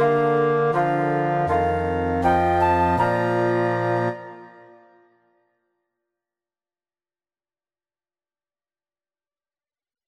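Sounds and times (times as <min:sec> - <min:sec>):
tuba: 0:00.0 - 0:04.8
bassoon: 0:00.0 - 0:05.0
two flutes: 0:00.0 - 0:05.1.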